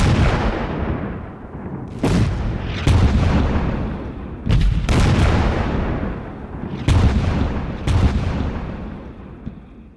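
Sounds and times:
World War I artillery guns firing at the Battle of Loos: 0:00.0 - 0:09.8.

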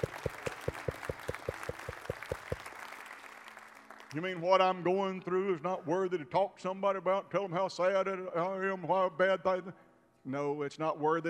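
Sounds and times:
speech: 0:00.0 - 0:00.4, 0:04.1 - 0:11.2
audience clapping: 0:00.0 - 0:04.2.

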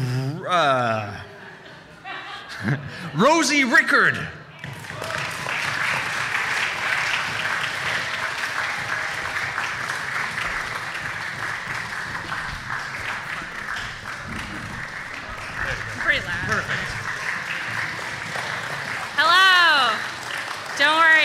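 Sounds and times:
laughter: 0:00.0 - 0:03.2, 0:12.2 - 0:18.5
speech: 0:00.5 - 0:01.3, 0:02.6 - 0:04.4
audience applause: 0:04.6 - 0:21.2.

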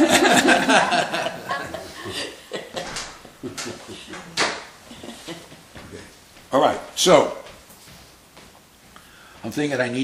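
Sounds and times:
laughter: 0:00.0 - 0:05.6
speech: 0:00.3 - 0:01.2, 0:06.6 - 0:07.4, 0:09.6 - 0:10.0
door closing: 0:02.7 - 0:04.8.

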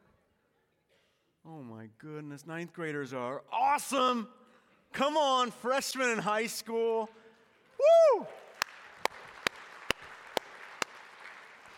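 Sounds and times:
speech: 0:01.5 - 0:07.2, 0:07.8 - 0:08.4
audience clapping: 0:07.3 - 0:11.7.

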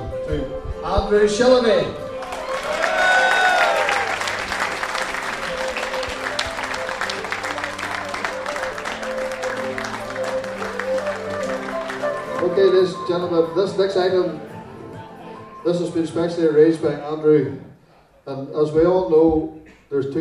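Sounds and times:
speech: 0:00.3 - 0:02.0, 0:12.8 - 0:14.5, 0:15.6 - 0:17.7, 0:18.3 - 0:20.1
audience applause welcoming a guest at a Kids with Cancer charity night: 0:02.2 - 0:12.9.

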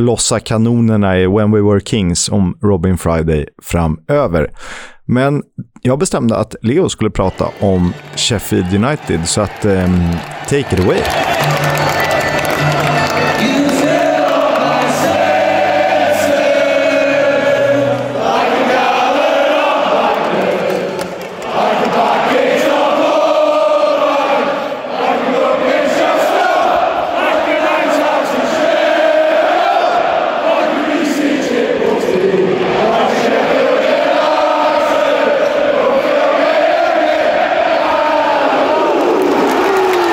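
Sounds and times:
speech: 0:00.0 - 0:13.6
football crowd singing a stadium chant: 0:10.2 - 0:40.1.

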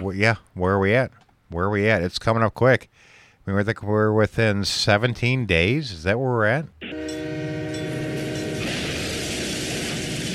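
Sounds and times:
speech: 0:00.0 - 0:07.2
train crash sound effect: 0:06.8 - 0:10.3.

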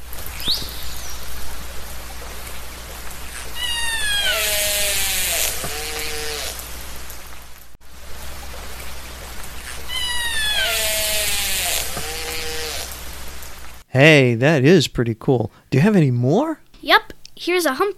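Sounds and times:
steady hiss: 0:00.0 - 0:13.9
killer whale vocalizations: 0:03.5 - 0:06.6, 0:09.7 - 0:12.9
speech: 0:14.0 - 0:17.9.

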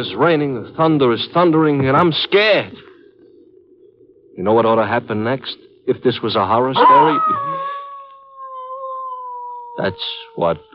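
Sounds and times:
speech: 0:00.0 - 0:02.9, 0:04.4 - 0:07.7, 0:09.8 - 0:10.7
dog howling at night: 0:06.8 - 0:10.7.

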